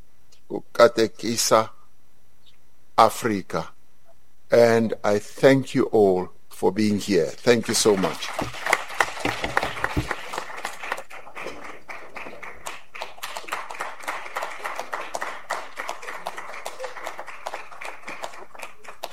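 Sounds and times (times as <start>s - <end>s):
speech: 0.8s - 1.8s, 3.0s - 3.8s, 4.5s - 10.1s
round of applause: 7.4s - 19.1s.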